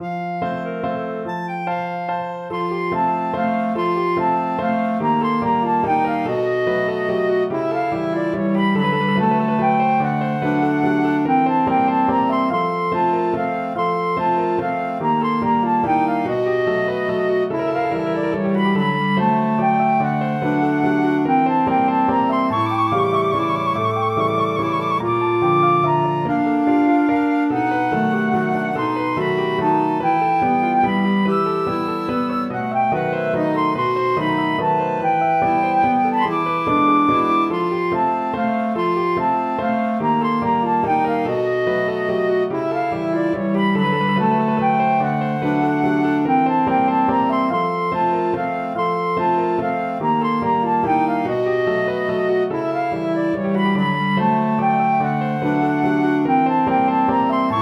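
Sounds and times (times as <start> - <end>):
waltz music: 0.0 - 57.6.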